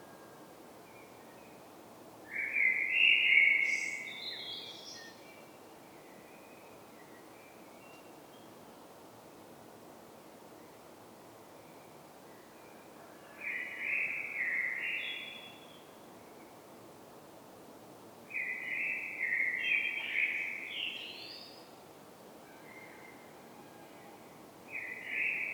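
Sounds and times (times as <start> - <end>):
common blackbird song: 2.3 - 8.5, 13.2 - 15.9, 18.3 - 21.7, 24.7 - 25.5.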